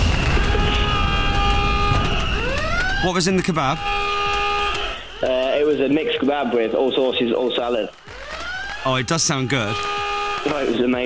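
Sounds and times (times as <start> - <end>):
buzzer being pressed: 0.0 - 5.6, 9.3 - 11.0
speech: 3.0 - 4.0, 5.2 - 8.1, 8.8 - 11.0.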